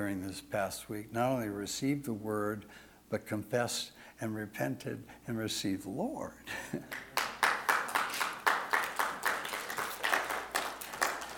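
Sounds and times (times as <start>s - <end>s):
speech: 0.0s - 7.1s
audience applause: 6.9s - 11.3s.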